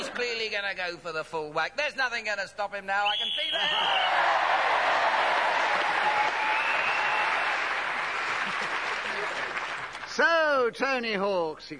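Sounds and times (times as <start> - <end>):
speech: 0.2 - 4.6, 10.2 - 11.7
crowd audience applause: 3.6 - 10.2.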